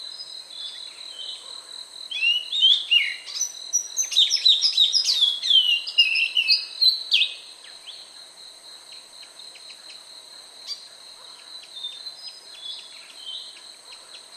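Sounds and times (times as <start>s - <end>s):
song: 2.2s - 7.4s.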